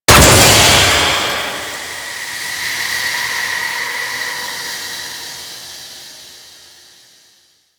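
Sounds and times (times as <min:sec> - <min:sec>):
cryo pod damage sound effect: 0:00.1 - 0:03.3.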